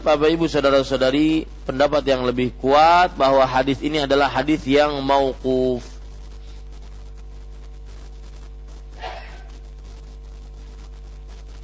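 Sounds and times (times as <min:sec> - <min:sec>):
speech: 0:00.0 - 0:05.9
sneeze: 0:09.0 - 0:09.5.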